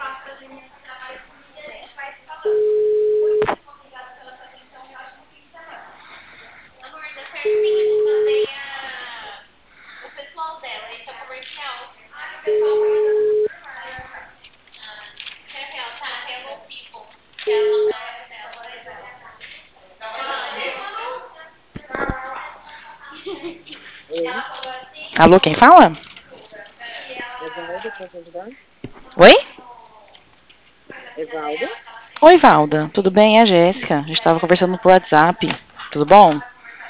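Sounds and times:
telephone ringback tone: 2.4 - 3.4, 7.4 - 8.5, 12.5 - 13.5, 17.5 - 18.0
speech: 25.2 - 26.0, 28.0 - 29.4, 32.2 - 36.5.

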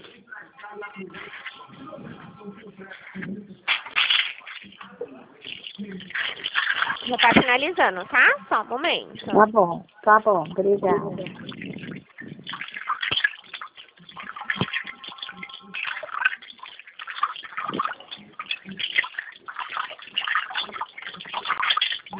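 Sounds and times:
water running while clothes are washed, over a telephone line: 1.2 - 9.4, 10.1 - 22.1
speech: 7.1 - 11.5.

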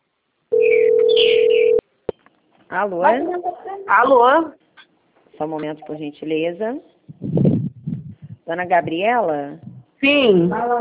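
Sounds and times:
telephone ringback tone while calling a bank: 0.5 - 1.8
speech: 2.7 - 4.6, 5.4 - 6.9, 8.5 - 10.7.

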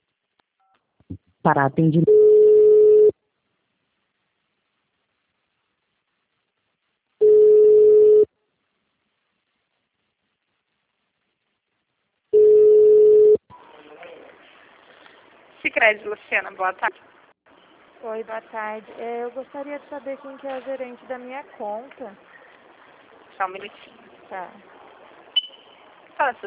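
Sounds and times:
speech: 1.1 - 2.2, 15.9 - 17.2, 18.0 - 22.3, 23.4 - 24.7, 26.2 - 26.4
ringback tone while placing a phone call: 2.1 - 3.1, 7.2 - 8.3, 12.4 - 13.4.

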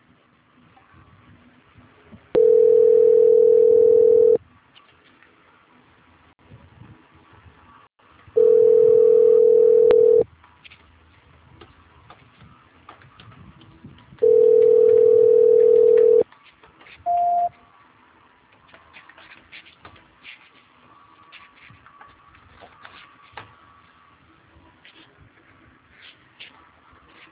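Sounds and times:
telephone tones during a call transfer: 2.4 - 4.4, 8.4 - 10.2, 14.2 - 16.2, 17.1 - 17.5
short higher telephone beep: 17.1 - 17.5.

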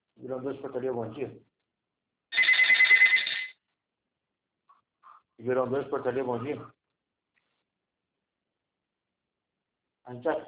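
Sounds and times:
speech: 0.2 - 1.5, 5.4 - 6.8, 10.1 - 10.4
telephone ringing at a building's front desk: 2.3 - 3.6.

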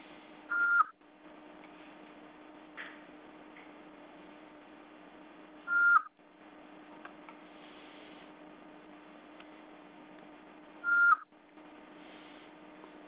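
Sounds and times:
low hiss and hum: 0.0 - 13.0
voicemail electronic beeps: 0.5 - 0.9, 5.7 - 6.1, 10.8 - 11.2.

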